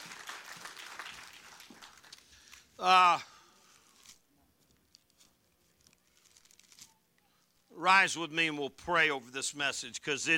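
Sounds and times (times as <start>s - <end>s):
audience clapping: 0.0s - 2.4s
speech: 2.8s - 3.3s, 7.8s - 10.3s.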